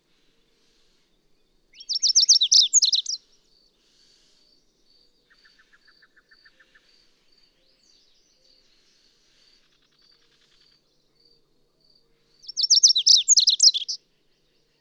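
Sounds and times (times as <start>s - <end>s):
bird song: 0.0s - 14.7s.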